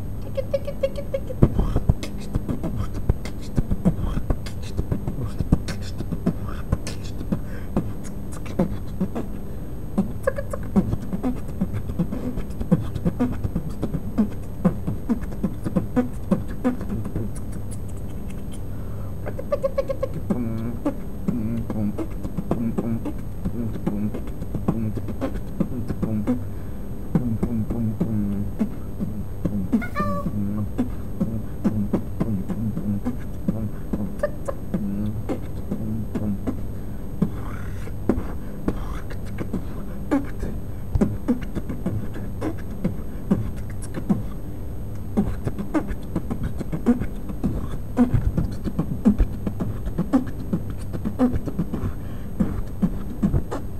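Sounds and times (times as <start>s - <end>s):
beatboxing: 0.2s - 9.4s, 10.0s - 26.5s, 27.1s - 44.4s, 44.9s - 53.7s.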